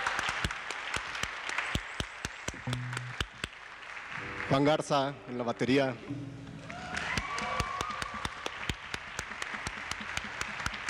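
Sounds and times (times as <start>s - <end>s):
audience applause: 0.0s - 5.5s, 6.6s - 10.8s
speech: 2.7s - 2.9s, 4.5s - 6.4s.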